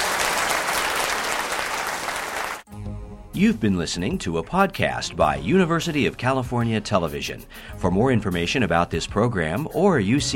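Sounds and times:
audience applause: 0.0 - 2.7
speech: 3.4 - 10.3.

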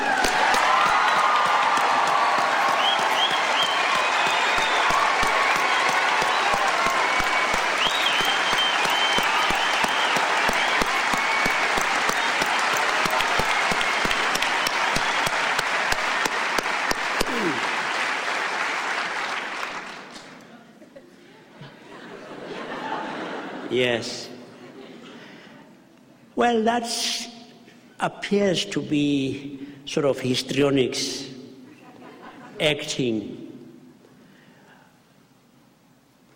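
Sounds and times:
scattered cheers: 0.0 - 17.9
big crowd applauding: 0.0 - 20.5
laughter: 20.4 - 25.8, 31.7 - 32.6
speech: 23.8 - 24.3, 26.4 - 27.2, 28.0 - 31.2, 32.6 - 33.5.

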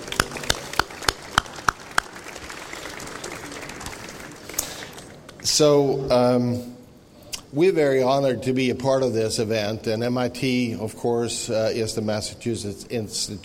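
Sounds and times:
audience applause: 0.0 - 5.4
speech: 5.5 - 6.8, 7.5 - 13.4.

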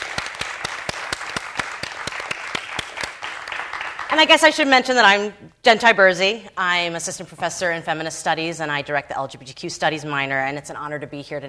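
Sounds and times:
audience applause: 0.0 - 4.1
speech: 4.1 - 11.4.

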